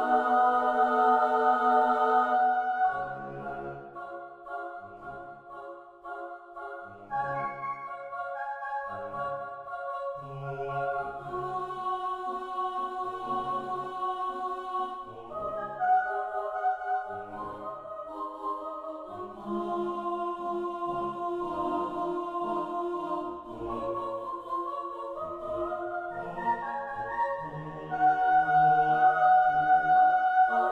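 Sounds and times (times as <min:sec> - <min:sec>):
choir singing: 0:00.0 - 0:30.7.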